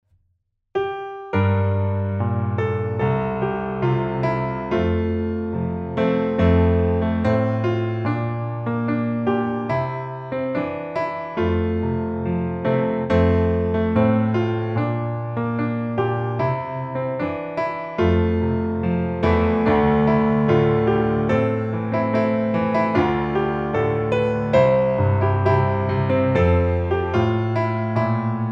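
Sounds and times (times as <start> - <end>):
piano: 0.8 - 28.4.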